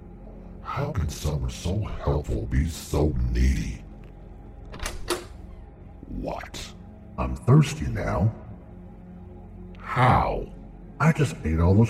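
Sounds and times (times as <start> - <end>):
speech: 0.8 - 3.8, 6.2 - 8.4, 10.0 - 11.8
door latch click: 4.6 - 5.6
door opening: 4.6 - 5.8.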